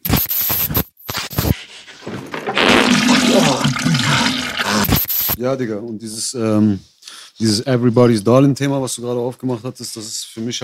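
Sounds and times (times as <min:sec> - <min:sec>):
clattering and scraping: 0:01.9 - 0:04.4
toilet flushing: 0:02.0 - 0:04.9
speech: 0:05.4 - 0:10.6.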